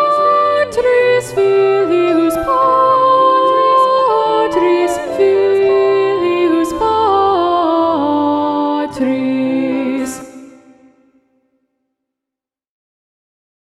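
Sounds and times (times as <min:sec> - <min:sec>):
soprano and alto voices singing with alto predominant: 0:00.0 - 0:10.9.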